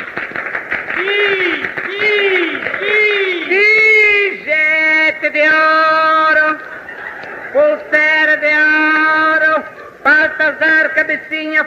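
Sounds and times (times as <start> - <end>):
applause at a small party: 0.0 - 3.9
speech: 1.0 - 2.2, 5.2 - 6.6, 7.5 - 11.6
laughter: 5.8 - 10.5.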